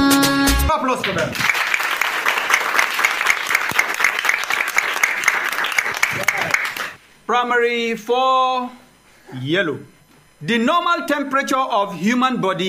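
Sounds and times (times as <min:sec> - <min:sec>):
speech: 0:00.9 - 0:01.5, 0:07.3 - 0:12.6
audience applause: 0:01.0 - 0:07.0.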